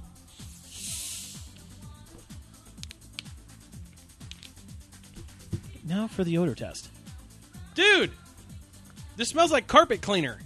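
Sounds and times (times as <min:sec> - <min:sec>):
quiet rhythmic music bed: 0:00.0 - 0:10.4
cold drink can being cracked open: 0:00.3 - 0:02.2
speech: 0:05.9 - 0:07.0, 0:07.8 - 0:08.2, 0:09.2 - 0:10.4.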